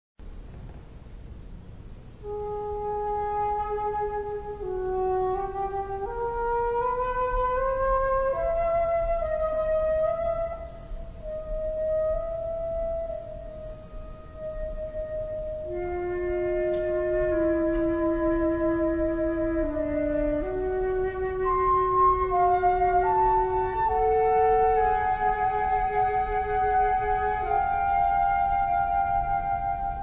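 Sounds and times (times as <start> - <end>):
flute pieces: 2.2 - 30.0.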